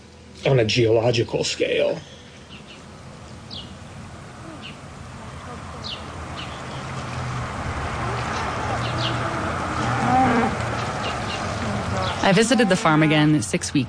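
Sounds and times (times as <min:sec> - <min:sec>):
steady outdoor hum: 0:00.0 - 0:13.8
speech: 0:00.4 - 0:02.2, 0:12.3 - 0:13.8
cattle mooing: 0:07.9 - 0:13.1.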